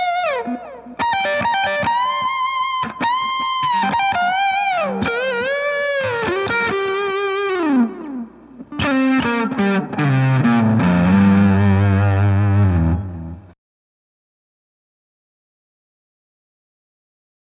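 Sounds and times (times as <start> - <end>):
Colorsound effects pedal guitar tone: 0.0 - 13.6.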